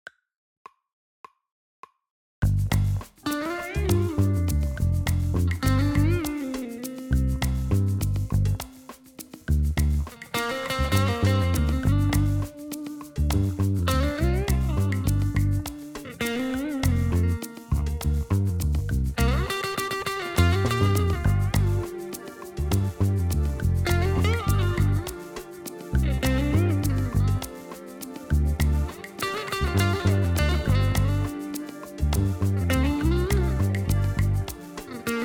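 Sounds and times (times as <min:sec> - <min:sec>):
music without drums: 0:02.4 - 0:35.2.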